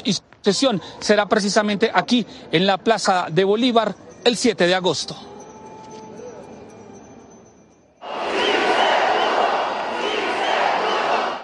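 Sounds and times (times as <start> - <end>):
speech: 0.0 - 5.3
crowd shouting with joy, celebrating: 8.0 - 11.4.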